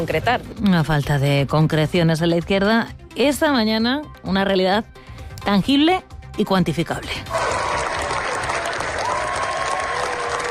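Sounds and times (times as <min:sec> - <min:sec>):
speech: 0:00.0 - 0:07.4
long applause at film festival in Cannes: 0:07.3 - 0:10.4.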